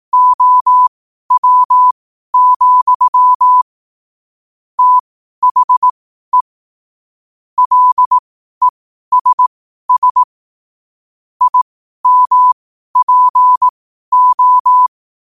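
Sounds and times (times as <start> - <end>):
morse code at 5 wpm: 0.1 - 3.6, 4.8 - 6.5, 7.6 - 8.2, 9.1 - 10.3, 11.4 - 14.9.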